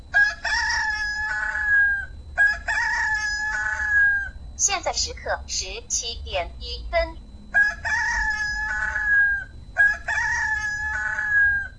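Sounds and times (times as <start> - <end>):
alarm clock rooster-crow alarm tone: 0.0 - 4.6, 7.3 - 11.7
speech: 4.6 - 7.2.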